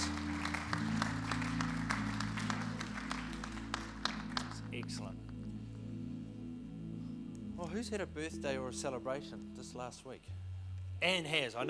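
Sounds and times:
church congregation applauding to welcome guests during a morning service: 0.0s - 5.5s
sustained low musical tones: 0.0s - 11.6s
speech: 7.6s - 10.4s, 11.0s - 11.6s.

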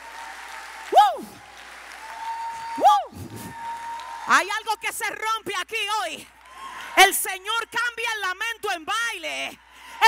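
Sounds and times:
audience applause: 0.0s - 4.7s, 6.3s - 7.0s
speech: 4.3s - 6.4s, 7.0s - 10.0s.

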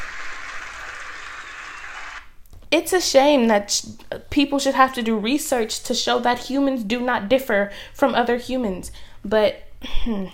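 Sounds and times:
applause: 0.0s - 2.3s
speech: 2.7s - 10.3s.

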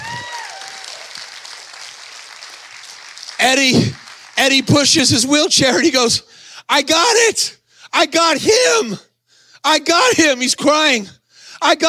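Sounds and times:
whoops and shouts: 0.0s - 1.2s
crowd clapping: 0.0s - 5.3s
speech: 3.4s - 11.8s.

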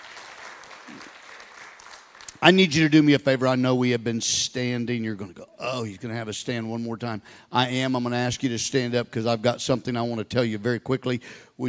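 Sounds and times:
audience hand clapping: 0.0s - 2.6s
speech: 2.4s - 11.6s.

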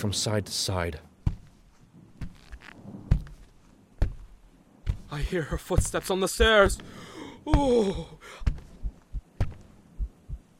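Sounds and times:
speech: 0.0s - 1.1s, 5.1s - 8.5s
heavy heartbeat: 3.1s - 10.5s.

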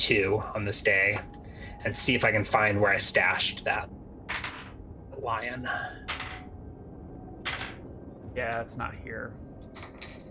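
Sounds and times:
speech: 0.1s - 4.0s, 5.2s - 6.2s, 8.4s - 9.4s
dice rolling: 4.3s - 4.7s, 6.1s - 6.4s, 7.5s - 7.8s.

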